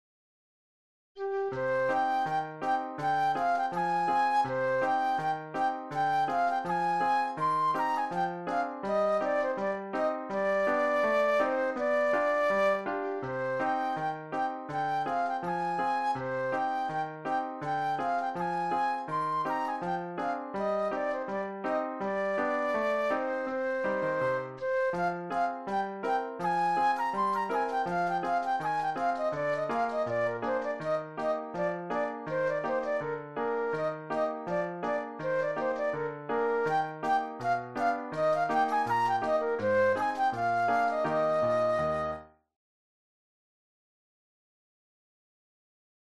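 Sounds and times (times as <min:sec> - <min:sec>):
flute solo: 0:01.2 - 0:42.5.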